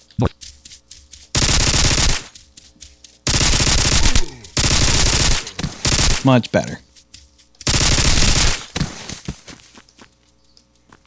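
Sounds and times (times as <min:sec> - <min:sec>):
automatic gunfire in a video game: 0:01.4 - 0:02.3, 0:03.3 - 0:06.3, 0:07.7 - 0:08.8
speech: 0:06.2 - 0:06.9.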